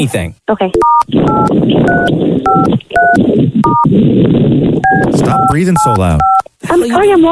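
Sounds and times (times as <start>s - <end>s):
rushing noise: 0.0s - 7.2s
speech: 0.0s - 7.2s
phone keypad dialing beeps: 0.7s - 3.9s, 4.8s - 6.4s.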